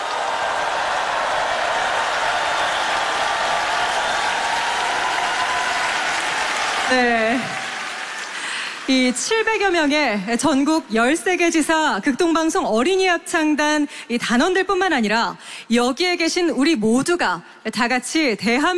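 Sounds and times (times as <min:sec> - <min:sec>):
audience applause after choir performance: 0:00.0 - 0:09.8
speech: 0:06.9 - 0:07.5, 0:08.9 - 0:18.7.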